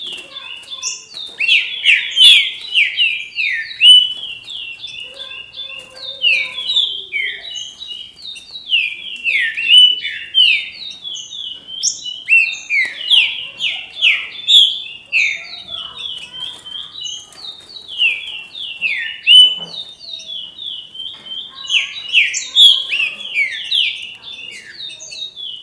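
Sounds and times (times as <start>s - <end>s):
faint chirping: 0.0s - 25.6s
green-winged saltator singing: 0.0s - 25.6s.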